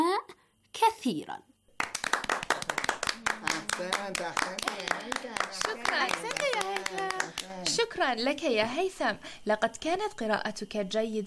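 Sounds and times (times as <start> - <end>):
speech: 0.8 - 1.6, 3.4 - 11.2
classmates clapping for a pupil's reading in class: 1.8 - 7.8.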